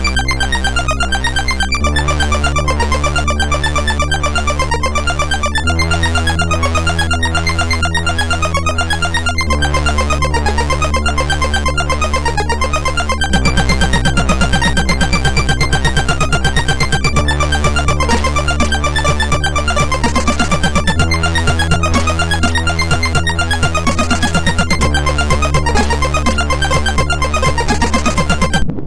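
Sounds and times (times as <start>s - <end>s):
MOS6581R2 SID chip synth sound: 0.0s - 28.6s.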